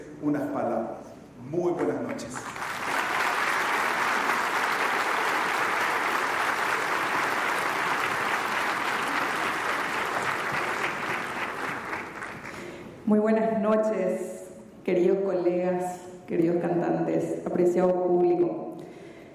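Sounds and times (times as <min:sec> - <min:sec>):
speech: 0:00.2 - 0:02.7, 0:13.1 - 0:18.6
audience applause welcoming the director general at an evening concert gathering: 0:02.2 - 0:12.8.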